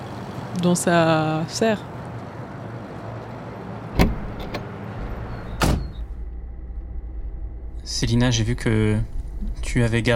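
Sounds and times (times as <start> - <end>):
speech: 0.6 - 2.0, 8.0 - 10.1
taxi engine rumble: 2.6 - 10.1
taxi door slamming: 4.0 - 4.7.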